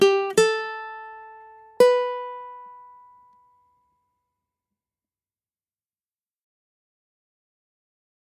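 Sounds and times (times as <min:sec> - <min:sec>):
ukulele accompaniment: 0:00.0 - 0:03.6.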